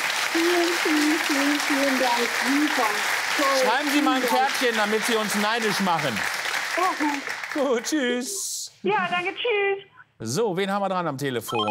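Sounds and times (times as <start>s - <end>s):
studio audience applause: 0.0s - 8.3s
speech: 0.4s - 11.6s.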